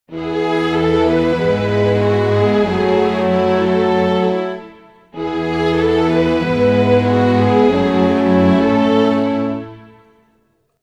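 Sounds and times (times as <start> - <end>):
orchestral music in E major: 0.1 - 10.3.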